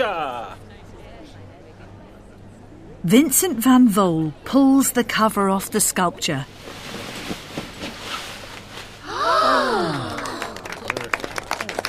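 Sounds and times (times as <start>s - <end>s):
speech: 3.0s - 6.7s
crowd saying ooh: 9.0s - 10.8s
crowd clapping: 9.8s - 11.8s.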